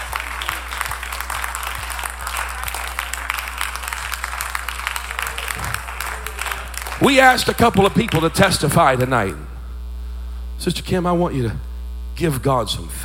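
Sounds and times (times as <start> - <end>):
people clapping hands: 0.0 - 9.4
speech: 7.0 - 9.4, 10.6 - 13.0.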